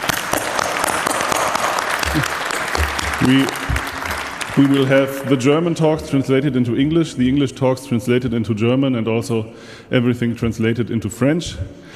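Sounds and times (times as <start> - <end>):
conference audience applauding the translation team: 0.0 - 5.8
speech: 2.2 - 2.4, 3.2 - 3.7, 4.6 - 11.9.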